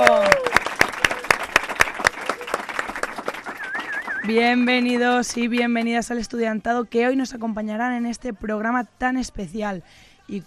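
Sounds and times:
studio audience applause: 0.0s - 5.4s
speech: 4.3s - 10.4s.

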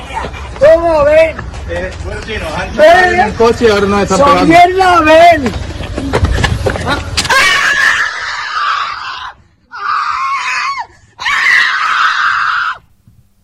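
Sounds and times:
speech: 0.6s - 5.6s, 6.8s - 7.1s
harsh screams of pain: 7.2s - 12.9s.

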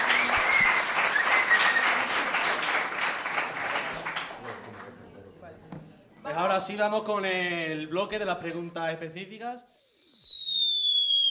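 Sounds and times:
whistle: 0.0s - 2.1s, 9.6s - 11.2s
crowd applauding: 0.0s - 5.0s
speech: 6.6s - 9.7s.

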